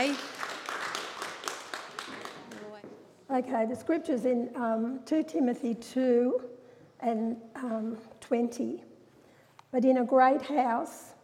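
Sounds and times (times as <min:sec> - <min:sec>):
audience clapping in encouragement: 0:00.0 - 0:03.0
speech: 0:03.4 - 0:08.9, 0:09.7 - 0:11.1.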